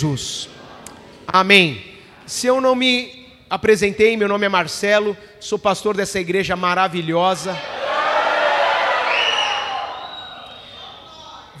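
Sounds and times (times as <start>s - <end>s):
speech: 0.0s - 0.6s, 1.3s - 7.8s
audience shouting and cheering: 7.0s - 11.5s
higher whoops: 7.6s - 11.4s.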